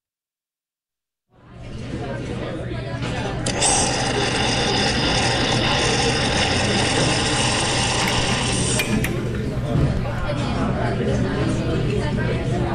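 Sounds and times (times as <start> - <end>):
indistinct voices: 2.8 - 12.7
espresso machine buzzing pump whine: 3.4 - 9.2
espresso machine running with low mechanical hum: 3.4 - 9.3
espresso machine gurgling flow: 3.5 - 8.8.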